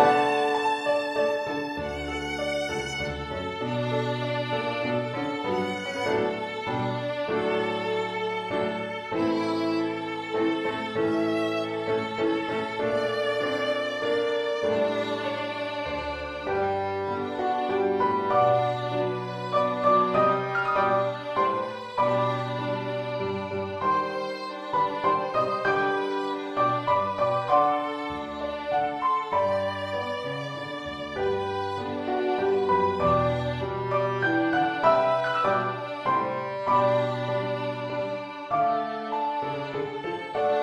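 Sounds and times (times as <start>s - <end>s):
piano: 0.0s - 40.6s
violin: 0.0s - 40.6s.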